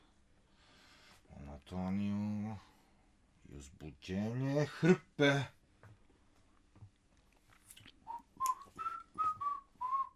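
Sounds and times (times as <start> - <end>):
speech: 1.6 - 2.8, 3.5 - 5.6
worker whistling a short tune: 8.1 - 10.1.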